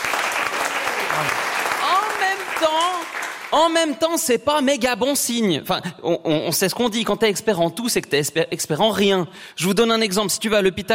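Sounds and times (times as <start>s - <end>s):
audience applause: 0.0s - 3.8s
speech: 2.3s - 10.9s.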